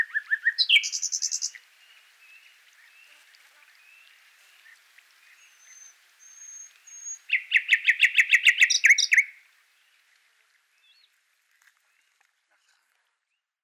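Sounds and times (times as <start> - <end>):
common nightingale singing: 0.0 - 3.1, 5.3 - 9.4.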